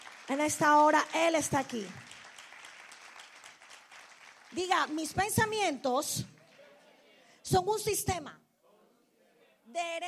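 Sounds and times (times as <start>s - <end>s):
audience applauding: 0.0s - 5.6s
speech: 0.3s - 2.1s, 4.6s - 6.3s, 7.5s - 8.4s, 9.7s - 10.0s.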